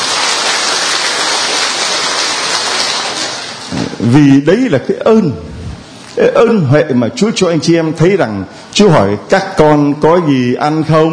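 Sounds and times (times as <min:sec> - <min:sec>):
audience applause: 0:00.0 - 0:03.7
speech: 0:04.0 - 0:05.6, 0:06.2 - 0:11.1.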